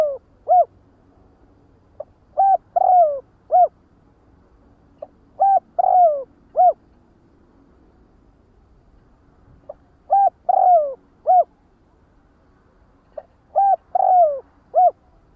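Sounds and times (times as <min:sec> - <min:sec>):
spotted dove cooing: 0:00.0 - 0:00.7, 0:02.0 - 0:03.8, 0:05.4 - 0:06.8, 0:09.7 - 0:11.5, 0:13.2 - 0:15.2.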